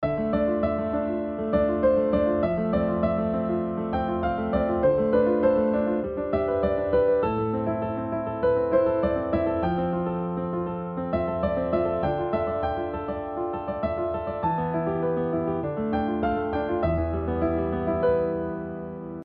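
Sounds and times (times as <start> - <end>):
chords and melody: 0.0 - 19.2.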